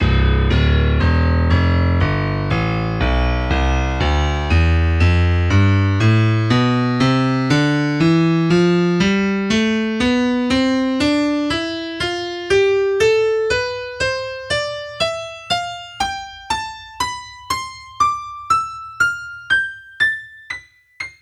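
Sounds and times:
bright Yamaha grand piano playing scales: 0.0s - 21.2s.

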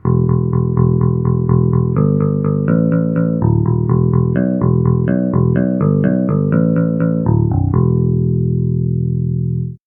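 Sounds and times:
clean guitar: 0.0s - 9.8s.

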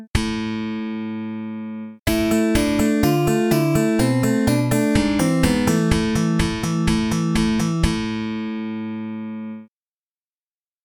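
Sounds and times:
slap bass: 0.1s - 1.5s, 2.1s - 9.1s.

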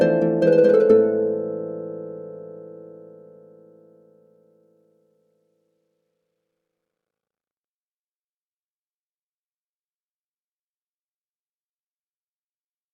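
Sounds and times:
harp: 0.0s - 4.6s.

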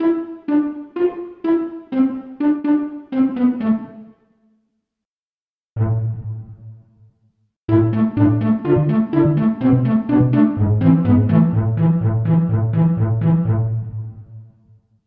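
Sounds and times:
pizzicato section: 0.0s - 4.1s, 5.8s - 6.5s, 7.7s - 14.1s.

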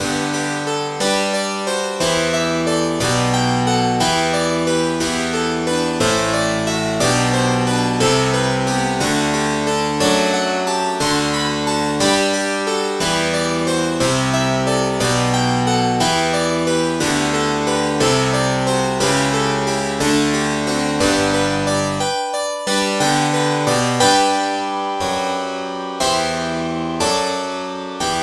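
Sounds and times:
harpsichord: 0.0s - 28.2s.

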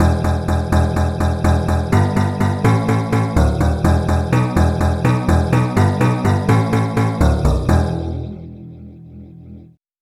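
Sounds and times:
dulcimer: 0.0s - 8.4s
bass: 0.0s - 9.8s.

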